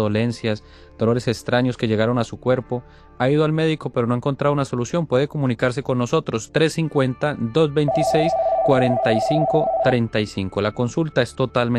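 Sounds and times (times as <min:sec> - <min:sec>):
speech: 0:00.0 - 0:11.7
telephone ringing with an incoming call to a radio call-in show: 0:07.9 - 0:10.0.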